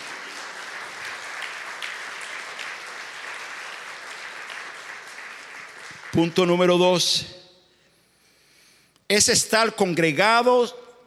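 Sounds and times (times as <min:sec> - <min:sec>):
audience applause: 0:00.0 - 0:06.6
speech: 0:06.2 - 0:07.4, 0:09.1 - 0:10.8.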